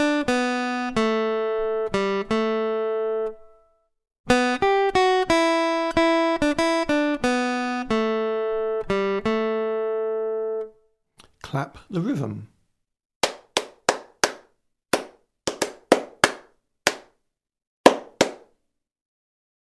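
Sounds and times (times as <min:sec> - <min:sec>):
acoustic guitar rhythm test: 0:00.0 - 0:03.4, 0:04.3 - 0:11.3, 0:13.2 - 0:17.1, 0:17.9 - 0:18.5.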